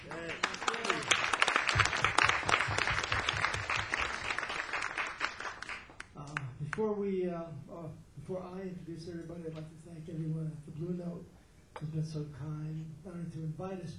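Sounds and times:
audience applause: 0.0 - 6.1
speech: 6.8 - 13.9.

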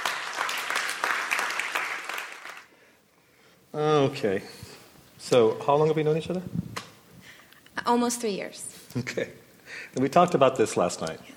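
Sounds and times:
audience applause: 0.0 - 2.7
speech: 3.8 - 4.6, 5.2 - 6.6, 7.9 - 11.3.

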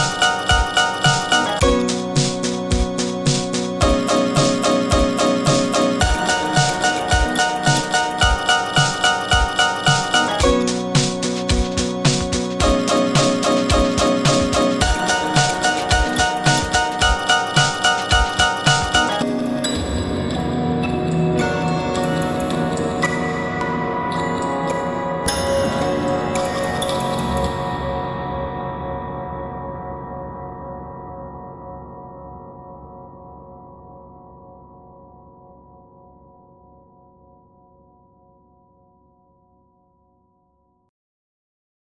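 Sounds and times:
piano: 0.0 - 32.2.

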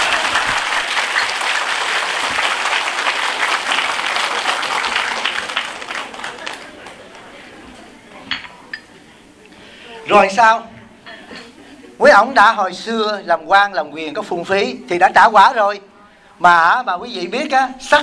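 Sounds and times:
crowd applause: 0.0 - 7.8
speech: 10.1 - 10.7, 12.0 - 18.0.

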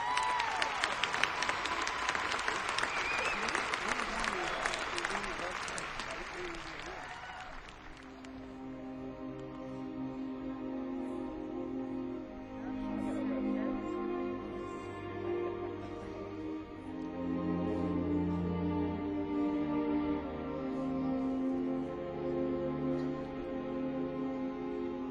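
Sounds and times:
audience applause welcoming a concert and recording artist: 0.0 - 8.6
sustained orchestral tones: 8.2 - 25.0.

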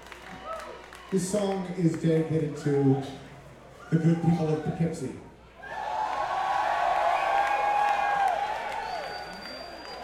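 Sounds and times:
crowd whooping and shouting: 0.0 - 1.4, 3.7 - 10.0
crowd clapping: 0.0 - 2.3, 5.6 - 10.0
speech: 1.1 - 3.2, 3.9 - 5.3.

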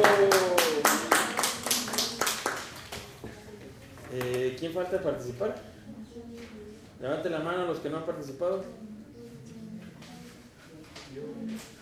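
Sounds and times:
hands clapping: 0.0 - 3.2
speech: 4.7 - 8.9.

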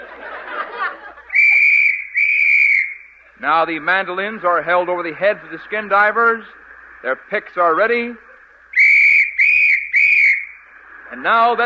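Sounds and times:
laughter: 0.0 - 1.8, 7.8 - 8.8
whistle blown as a starting signal: 1.3 - 3.4, 8.7 - 10.7
speech: 3.4 - 8.3, 11.2 - 11.6.

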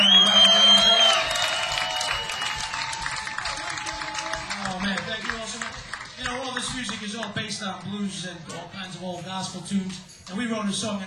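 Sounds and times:
audience applause: 0.0 - 7.4
speech: 7.6 - 11.0.

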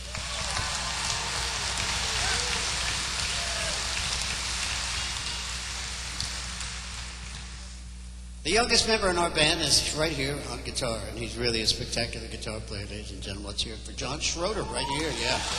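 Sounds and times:
audience applause: 0.0 - 7.3, 14.7 - 15.5
speech: 8.4 - 15.5.

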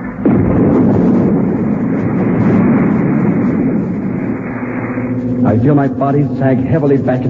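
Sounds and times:
retro rockets firing: 0.1 - 5.4
speech: 5.6 - 7.2.

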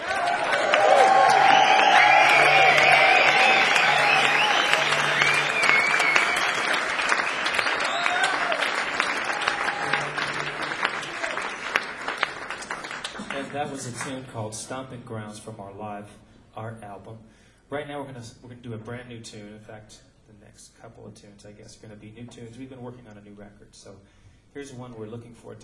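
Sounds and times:
audience whoops and cheers: 0.0 - 11.7
crowd applauding: 0.0 - 14.2
speech: 13.8 - 25.6.

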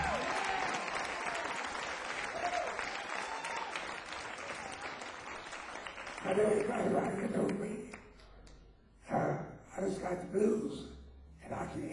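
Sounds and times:
audience applause for the band: 0.0 - 7.6
speech: 6.2 - 7.9, 10.1 - 10.9.

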